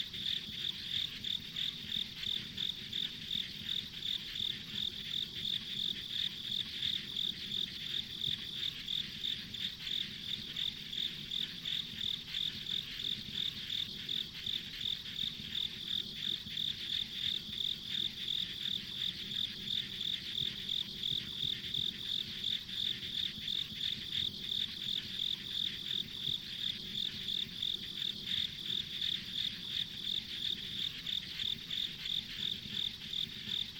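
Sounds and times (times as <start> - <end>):
insects chirping: 0.0 - 33.7.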